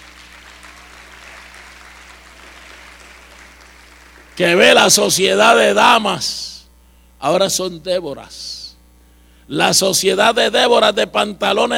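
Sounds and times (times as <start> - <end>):
applause from a congregation in a church: 0.0 - 5.2
speech: 4.4 - 6.5, 7.2 - 8.6, 9.5 - 11.7.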